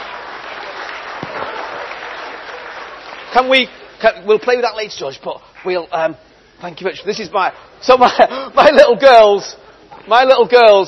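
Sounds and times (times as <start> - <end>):
audience applause: 0.0 - 3.7
speech: 3.4 - 10.8.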